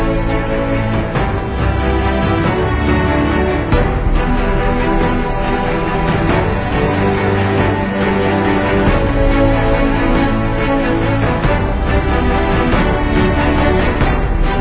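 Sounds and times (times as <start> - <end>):
background music: 0.0 - 14.5.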